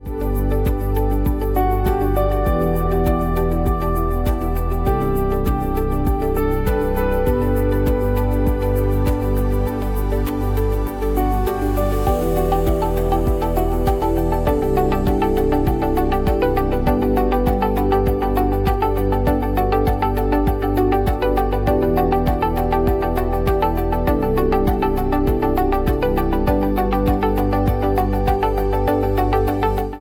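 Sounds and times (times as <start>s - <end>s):
calm confident factory and automation music: 0.0s - 29.9s.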